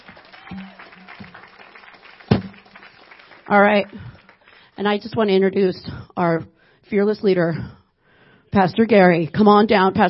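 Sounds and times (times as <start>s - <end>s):
audience applause: 0.0s - 4.6s
speech: 3.5s - 4.1s, 4.8s - 7.8s, 8.5s - 10.0s.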